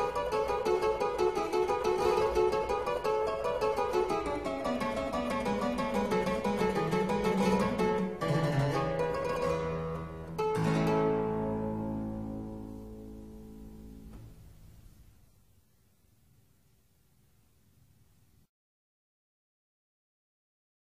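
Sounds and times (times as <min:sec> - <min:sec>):
harpsichord ensemble piece: 0:00.0 - 0:13.7.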